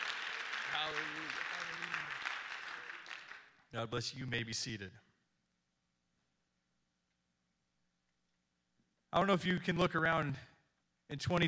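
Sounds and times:
audience clapping hands: 0:00.0 - 0:03.7
speech: 0:00.7 - 0:01.9, 0:03.7 - 0:05.1, 0:09.1 - 0:10.5, 0:11.1 - 0:11.4.

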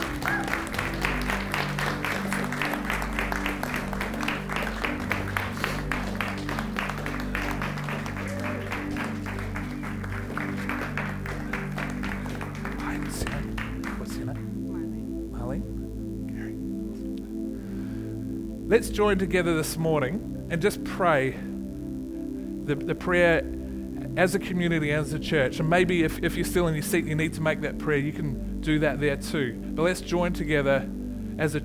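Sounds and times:
church audience applause: 0:00.0 - 0:14.6
sustained organ or keyboard chord: 0:00.0 - 0:31.6
speech: 0:18.7 - 0:21.5, 0:22.7 - 0:23.5, 0:24.2 - 0:31.6.

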